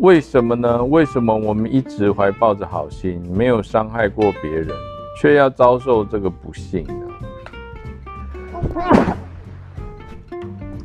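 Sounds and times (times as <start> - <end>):
speech: 0.0 - 7.0, 8.6 - 9.2
sneeze: 8.6 - 9.3.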